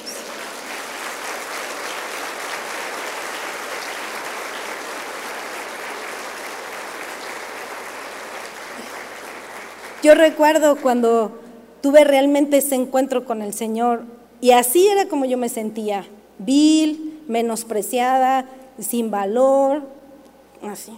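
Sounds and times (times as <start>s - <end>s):
audience applauding: 0.0s - 10.7s
speech: 10.0s - 20.0s, 20.6s - 20.9s.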